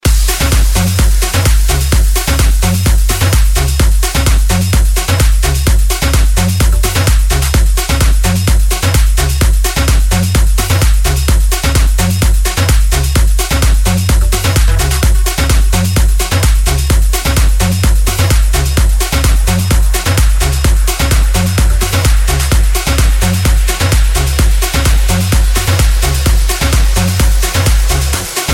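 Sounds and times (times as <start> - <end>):
dj mix music: 0.0 - 28.5.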